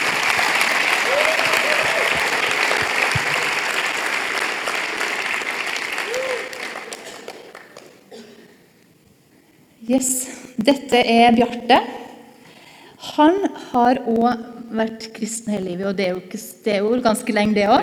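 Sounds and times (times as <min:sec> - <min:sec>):
audience applause: 0:00.0 - 0:08.1
speech: 0:09.9 - 0:12.0, 0:13.2 - 0:17.8.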